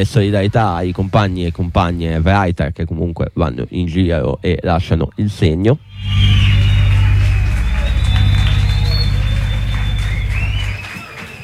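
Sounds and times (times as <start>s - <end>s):
speech: 0.0s - 6.4s
low droning hum: 5.8s - 10.8s
applause: 6.4s - 11.4s.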